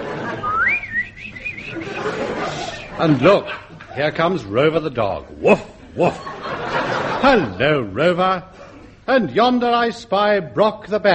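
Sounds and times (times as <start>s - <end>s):
laughter: 0.0s - 9.1s
person whistling an imitation of birds twittering: 0.3s - 2.2s
speech: 3.0s - 6.4s, 7.2s - 11.1s.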